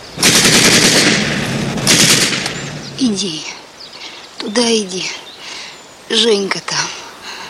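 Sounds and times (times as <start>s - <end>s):
machine gun fire as soldiers try to cross a ford: 0.2s - 3.0s
speech: 3.0s - 3.6s, 4.4s - 5.2s, 6.1s - 6.9s.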